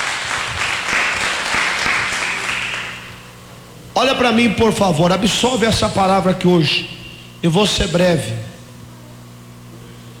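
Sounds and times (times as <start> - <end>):
audience clapping hands: 0.0 - 3.2
speech: 4.0 - 8.5.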